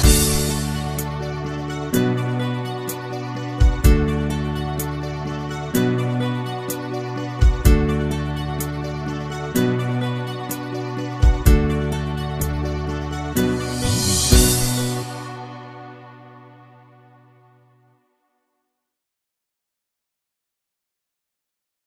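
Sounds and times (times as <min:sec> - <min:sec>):
Sinhala karaoke backing track without vocals: 0:00.0 - 0:16.3.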